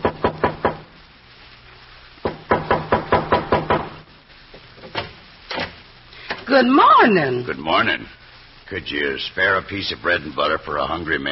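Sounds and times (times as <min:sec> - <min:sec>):
knocking on a wooden back door: 0:00.0 - 0:00.9, 0:02.2 - 0:04.0
speech: 0:06.5 - 0:11.3.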